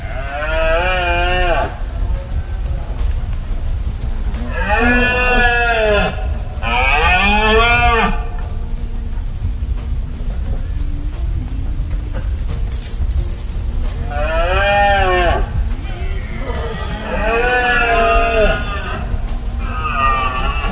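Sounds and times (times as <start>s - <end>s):
steady low rumble: 0.0s - 20.7s
red deer stags bellowing during the rut: 4.4s - 8.3s, 14.0s - 20.7s.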